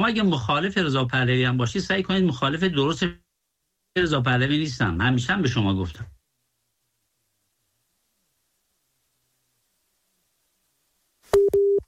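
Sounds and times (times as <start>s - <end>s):
speech: 0.0s - 3.2s, 4.0s - 6.2s
telephone busy tone after a phone-in caller is disconnected: 11.4s - 11.8s.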